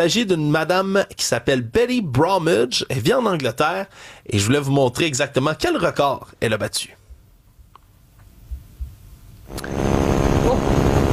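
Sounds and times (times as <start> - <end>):
speech: 0.0 - 7.0
biplane propeller engine drone: 9.5 - 11.1.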